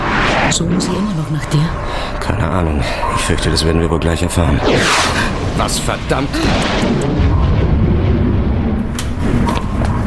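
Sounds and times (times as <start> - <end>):
speech: 0.6 - 7.4
thunder-like boom: 4.6 - 9.8.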